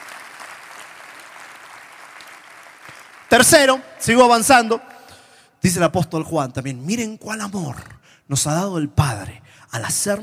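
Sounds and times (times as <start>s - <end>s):
audience applause: 0.0s - 3.5s
speech: 2.9s - 4.9s, 5.6s - 10.2s.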